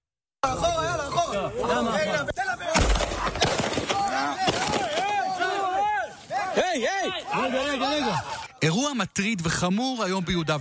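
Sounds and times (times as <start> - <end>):
agitated voices of people talking and shouting: 0.4 - 10.5
gunfire from a soldier shooting a Palestinian man near Faqqu'a by Jenin: 2.7 - 5.1
speech: 6.8 - 10.5.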